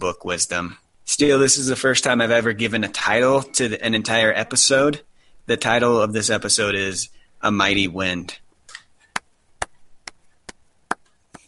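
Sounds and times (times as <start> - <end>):
speech: 0.0 - 8.4
person slow clapping: 9.1 - 11.4.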